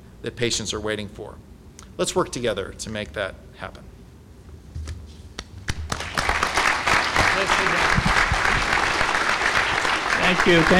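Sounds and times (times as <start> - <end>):
speech: 0.2 - 3.9, 10.3 - 10.7
audience applause after lecture: 5.9 - 10.7.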